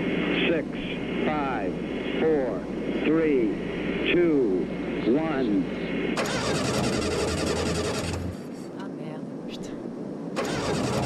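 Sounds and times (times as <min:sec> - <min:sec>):
speech: 0:00.6 - 0:04.5, 0:05.1 - 0:07.3
car engine starter cranking without catching: 0:06.2 - 0:08.4, 0:10.4 - 0:11.0.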